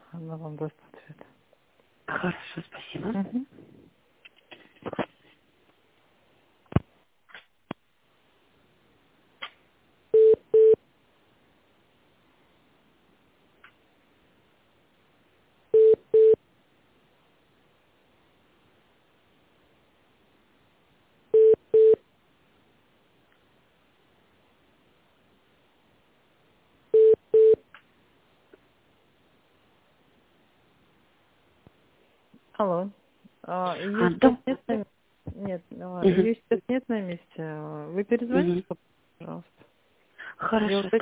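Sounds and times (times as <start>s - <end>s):
speech: 0.1s - 1.4s, 2.1s - 3.7s, 32.6s - 39.6s, 40.4s - 41.0s
telephone tones while call is transferred: 10.2s - 10.8s, 15.8s - 16.4s, 21.4s - 22.0s, 27.0s - 27.6s.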